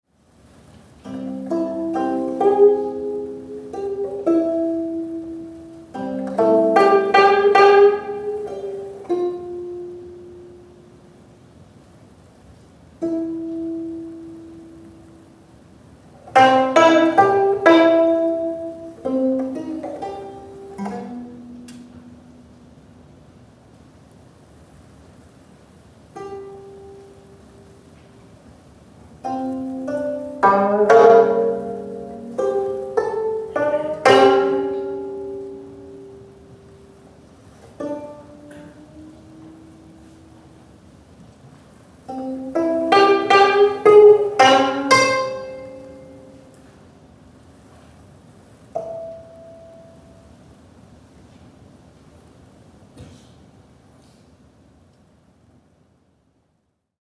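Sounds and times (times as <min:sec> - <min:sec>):
gayageum playing: 0:01.0 - 0:11.2, 0:13.0 - 0:23.1, 0:26.2 - 0:28.0, 0:29.1 - 0:40.9, 0:42.0 - 0:46.9, 0:48.6 - 0:50.5.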